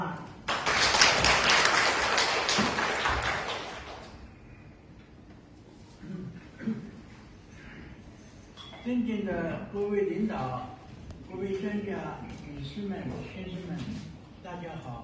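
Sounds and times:
audience applause: 0:00.5 - 0:04.2
speech: 0:08.9 - 0:10.7, 0:11.3 - 0:15.0.

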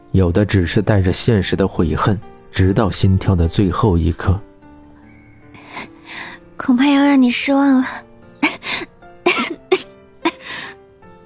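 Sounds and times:
speech: 0:00.2 - 0:04.5, 0:05.8 - 0:08.0
violent coughing: 0:08.4 - 0:10.8.

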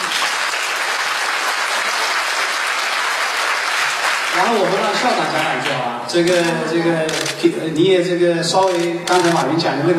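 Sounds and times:
warm audience applause: 0:00.0 - 0:06.4
speech: 0:04.4 - 0:09.9.

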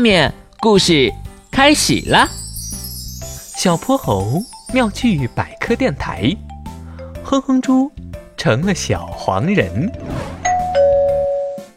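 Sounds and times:
speech: 0:00.0 - 0:02.4, 0:03.6 - 0:06.4, 0:07.3 - 0:10.1
doorbell ringing: 0:00.8 - 0:05.8, 0:10.4 - 0:11.6.

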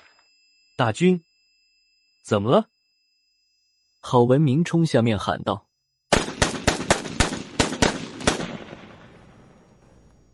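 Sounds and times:
speech: 0:00.8 - 0:01.3, 0:02.3 - 0:02.8, 0:04.0 - 0:05.7
several gunshots: 0:06.1 - 0:10.0.

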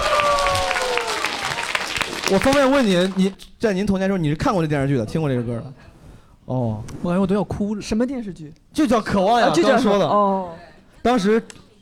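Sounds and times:
audience applause: 0:00.0 - 0:03.2
speech: 0:02.3 - 0:05.9, 0:06.5 - 0:11.6.

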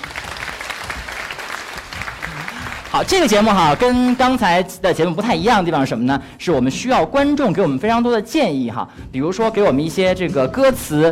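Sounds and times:
audience applause: 0:00.0 - 0:04.5
speech: 0:02.9 - 0:11.1.

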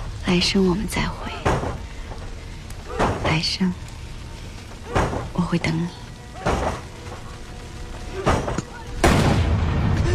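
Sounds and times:
speech: 0:00.3 - 0:01.7, 0:03.3 - 0:03.8, 0:05.4 - 0:06.7
gunshot: 0:08.2 - 0:10.0.

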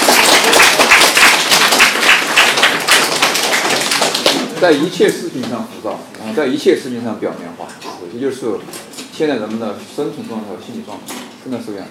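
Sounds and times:
audience applause: 0:00.0 - 0:04.5
speech: 0:04.6 - 0:11.9.

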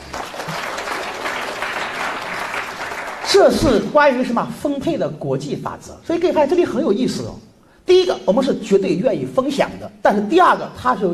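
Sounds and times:
crowd applauding: 0:00.0 - 0:03.5
speech: 0:03.3 - 0:11.1.

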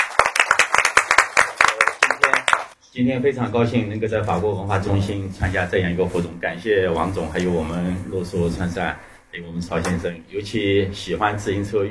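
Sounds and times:
audience applauding: 0:00.0 - 0:02.8
speech: 0:02.9 - 0:11.8.

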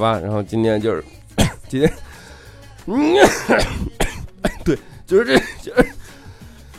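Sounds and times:
speech: 0:00.0 - 0:02.1, 0:02.8 - 0:04.0, 0:04.7 - 0:05.9
raspy coughs: 0:01.4 - 0:02.2, 0:03.0 - 0:06.2.

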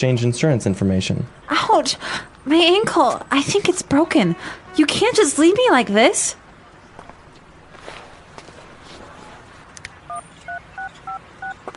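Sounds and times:
speech: 0:00.0 - 0:06.4
footsteps: 0:06.9 - 0:09.8
rustling: 0:07.0 - 0:10.0
phone keypad being dialed: 0:10.1 - 0:11.7.

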